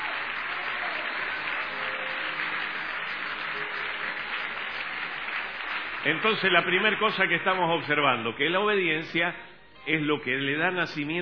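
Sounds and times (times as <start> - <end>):
audience applauding loudly: 0.0 - 8.4
speech: 6.0 - 11.2.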